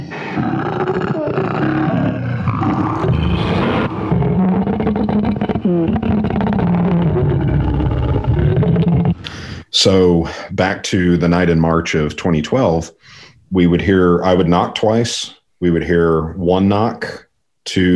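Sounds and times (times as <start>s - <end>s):
unidentified creature roaring scream: 0.0s - 9.2s
speech: 9.8s - 17.9s.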